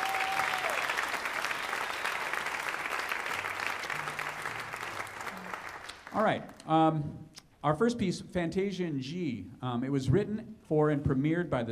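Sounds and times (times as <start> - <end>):
audience applause: 0.0 - 6.4
speech: 6.2 - 11.6.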